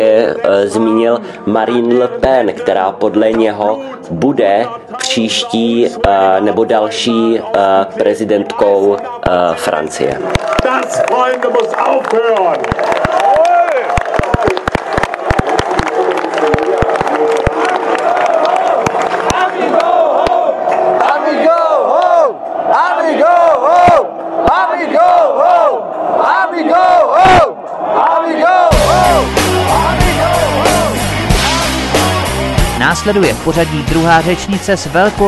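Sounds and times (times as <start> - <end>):
speech: 0.0 - 13.2, 33.0 - 35.2
large rally crowd cheering and chanting on a square: 0.0 - 35.2
rhythmic music: 28.7 - 35.2.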